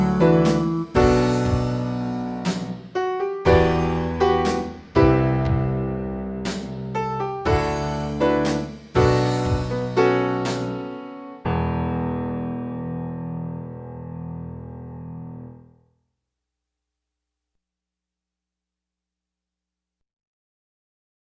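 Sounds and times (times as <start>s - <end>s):
piano interlude: 0.0s - 15.8s.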